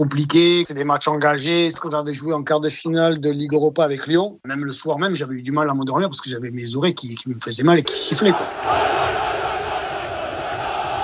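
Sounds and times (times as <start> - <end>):
speech: 0.0 - 9.2
football supporters roaring in a stadium: 7.9 - 11.0.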